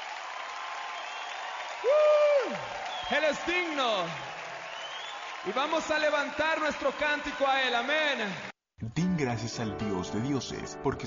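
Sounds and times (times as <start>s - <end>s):
audience applauding: 0.0s - 8.5s
speech: 1.8s - 4.3s, 5.4s - 11.0s.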